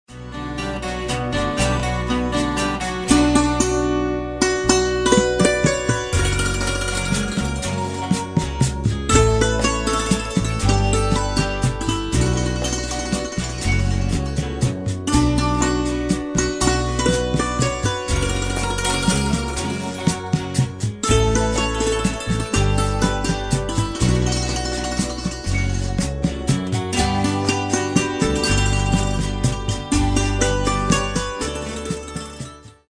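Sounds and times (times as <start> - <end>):
santoor playing: 0.1 - 32.8.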